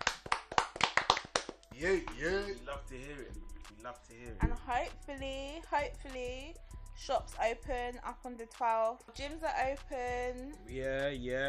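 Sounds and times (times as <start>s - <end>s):
clapping applause: 0.0s - 2.4s
speech: 1.8s - 11.4s.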